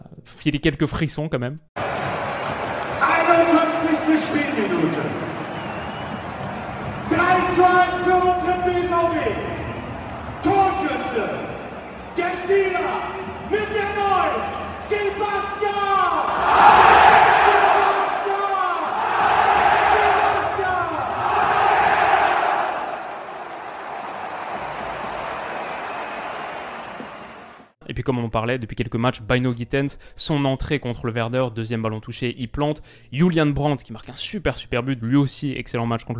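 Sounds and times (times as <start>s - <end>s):
speech: 0.4s - 1.8s, 3.4s - 5.4s, 7.1s - 9.6s, 10.4s - 11.5s, 12.2s - 17.0s, 28.0s - 36.1s
big stadium crowd roaring and chanting: 1.8s - 7.6s, 12.8s - 27.6s.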